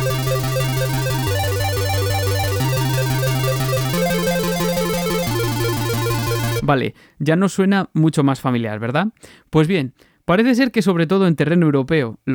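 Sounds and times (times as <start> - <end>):
steady bass line: 0.0 - 6.7
very fast C minor arpeggio, chiptune style: 0.0 - 6.7
speech: 6.7 - 12.3.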